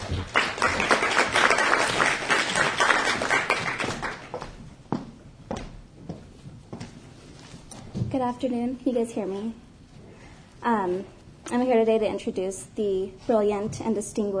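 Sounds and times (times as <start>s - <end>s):
audience round of applause: 0.0s - 4.5s
speech: 8.2s - 9.6s, 10.6s - 14.3s.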